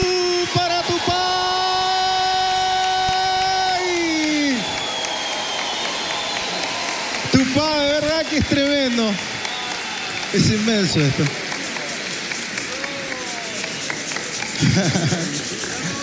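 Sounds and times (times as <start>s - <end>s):
laughter: 0.0s - 4.7s, 10.3s - 16.0s
audience applause in a gymnasium: 0.0s - 16.0s
speech: 8.4s - 9.4s, 10.3s - 11.4s, 14.8s - 15.3s.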